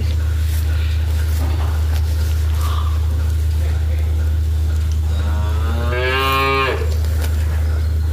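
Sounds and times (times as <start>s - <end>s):
steady low mechanical hum: 0.0s - 8.1s
calf mooing on a farm: 5.1s - 7.0s.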